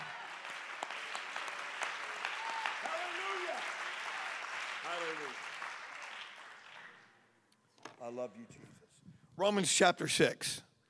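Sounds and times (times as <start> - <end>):
audience clapping hands: 0.0 - 7.2
speech: 8.1 - 8.8, 9.4 - 10.7.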